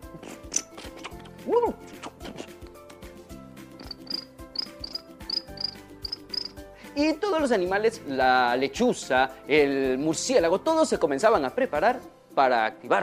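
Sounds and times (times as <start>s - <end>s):
speech: 1.5s - 1.9s, 7.0s - 13.0s
crickets chirping: 3.8s - 6.6s.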